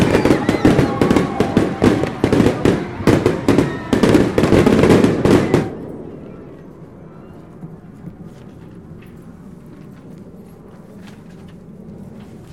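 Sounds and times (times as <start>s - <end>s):
fireworks bursting in the sky: 0.0s - 6.0s.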